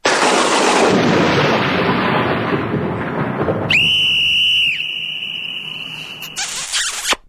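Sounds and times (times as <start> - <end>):
thunderclap: 0.0 - 6.4
whistle: 3.7 - 7.2
loud kiss: 6.0 - 7.2.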